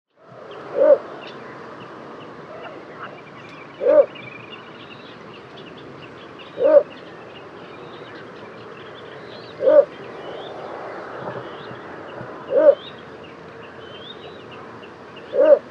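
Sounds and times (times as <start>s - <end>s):
little bittern barking call: 0.7s - 1.0s, 3.8s - 4.2s, 6.6s - 7.0s, 9.6s - 10.0s, 12.4s - 12.9s, 15.3s - 15.6s.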